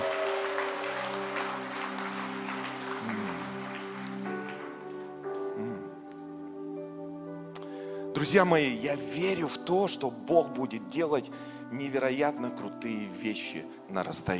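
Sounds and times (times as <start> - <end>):
audience applause: 0.0 - 5.1
speech: 8.2 - 14.3.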